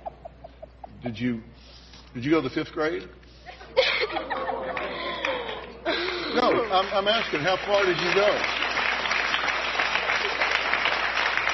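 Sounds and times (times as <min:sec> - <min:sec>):
speech: 0:01.0 - 0:03.2, 0:04.1 - 0:04.9, 0:06.4 - 0:08.6
laughter: 0:03.6 - 0:07.1
studio audience clapping: 0:04.6 - 0:11.5.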